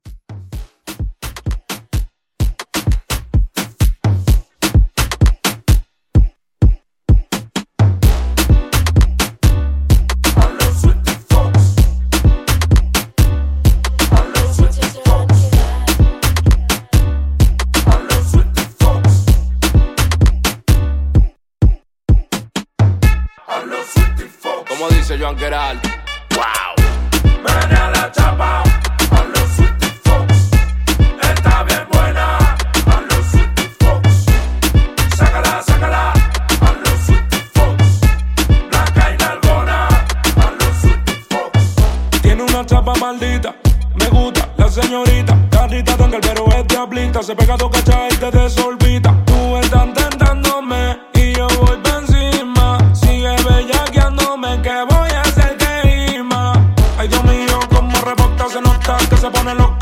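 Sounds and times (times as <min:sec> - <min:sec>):
Afro dance music mix: 0:00.0 - 0:59.8.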